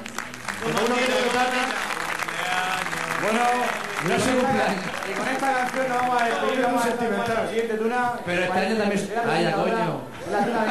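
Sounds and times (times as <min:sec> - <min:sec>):
audience applause: 0:00.0 - 0:07.3
speech: 0:00.6 - 0:01.8, 0:03.2 - 0:10.6.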